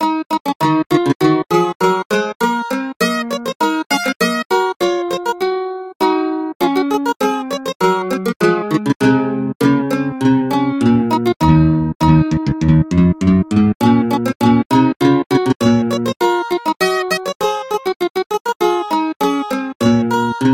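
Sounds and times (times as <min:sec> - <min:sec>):
mandolin: 0:00.0 - 0:20.5.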